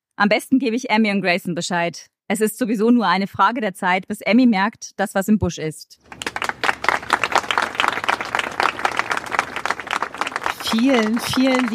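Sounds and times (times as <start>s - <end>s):
speech: 0.2s - 6.2s, 10.7s - 11.7s
audience applause: 6.1s - 11.7s.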